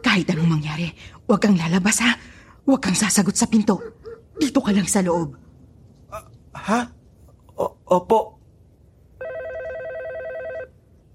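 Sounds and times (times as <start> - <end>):
low hum: 0.0 - 11.1
speech: 0.2 - 5.4, 6.1 - 7.0, 7.6 - 8.4
telephone ringing: 9.2 - 10.8.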